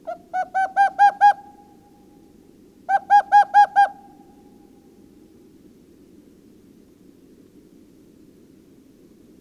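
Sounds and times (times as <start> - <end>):
owl hooting: 0.0 - 2.1, 2.9 - 4.8.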